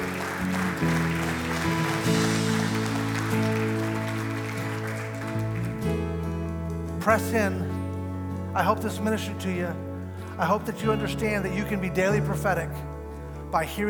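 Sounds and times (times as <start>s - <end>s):
audience clap offering: 0.0s - 10.6s
sustained keyboard or organ chords: 0.0s - 13.8s
speech: 7.1s - 7.7s, 8.6s - 12.9s, 13.5s - 13.8s.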